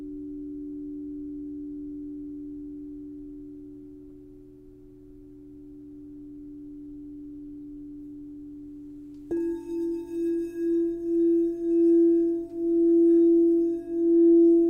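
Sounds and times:
crystal singing bowl tone: 0.0 - 14.6
struck note on crystal singing bowl: 9.1 - 14.6.

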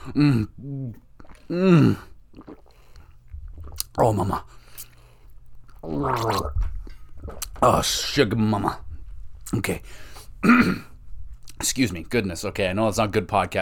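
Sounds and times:
person drinking water: 0.0 - 7.9
speech: 0.1 - 2.6, 4.0 - 4.6, 5.8 - 8.8, 9.5 - 10.9, 11.6 - 13.6.

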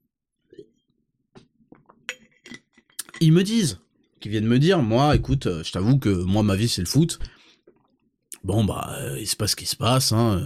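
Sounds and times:
glass clinking while taking a sip: 2.1 - 3.3
speech: 3.2 - 7.4, 8.4 - 10.4.

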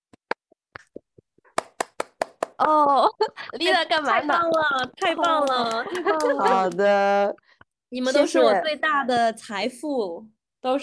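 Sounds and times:
hand clapping: 1.5 - 2.8, 4.1 - 7.3
speech: 2.6 - 10.8.

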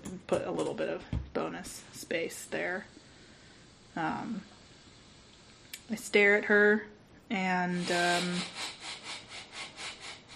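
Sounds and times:
speech: 0.3 - 3.0, 4.0 - 4.5, 5.9 - 8.6
heavy breathing into the microphone: 7.7 - 10.3.

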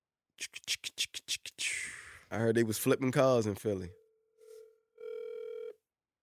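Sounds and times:
speech: 2.3 - 4.0
phone ringback tone while waiting for pickup: 4.4 - 5.8.

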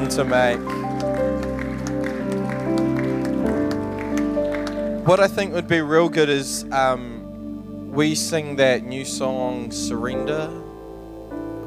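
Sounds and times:
church audience applause: 0.0 - 5.4
speech: 0.1 - 0.8, 5.0 - 7.1, 8.0 - 10.6.

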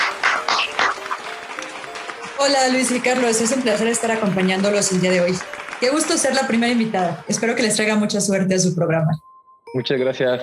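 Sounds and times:
applause: 0.0 - 7.7
speech: 2.4 - 10.4.

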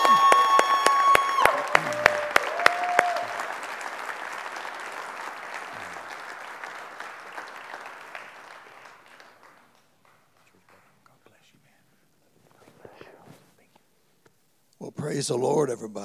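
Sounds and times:
audience clapping: 0.0 - 11.4
speech: 15.2 - 16.0.

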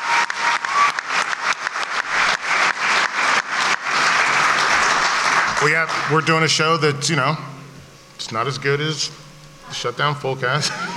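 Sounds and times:
crowd whoops and cheers: 0.0 - 1.6
crowd applause with dense rapid clapping: 0.0 - 7.4
speech: 5.6 - 7.5, 8.2 - 10.9.

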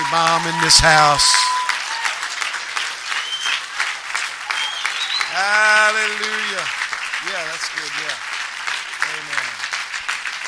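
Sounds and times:
audience applause: 0.0 - 10.4
speech: 0.1 - 1.7, 5.9 - 8.2.

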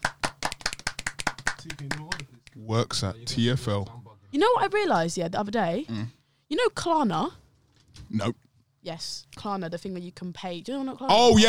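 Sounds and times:
people clapping: 0.0 - 2.4
speech: 1.6 - 7.4, 8.0 - 11.4.

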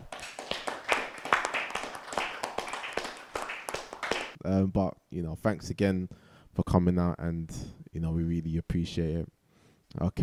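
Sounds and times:
crowd applauding: 0.0 - 4.4
speech: 4.4 - 9.4, 10.0 - 10.2.

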